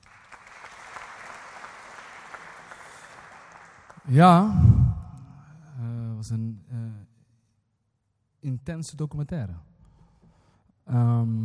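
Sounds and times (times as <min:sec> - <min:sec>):
audience applause: 0:00.0 - 0:04.0
speech: 0:04.1 - 0:04.7, 0:08.7 - 0:09.7, 0:10.9 - 0:11.4.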